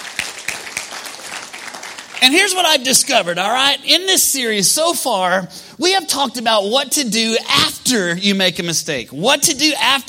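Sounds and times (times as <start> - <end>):
audience round of applause: 0.0 - 2.4
speech: 2.2 - 10.0.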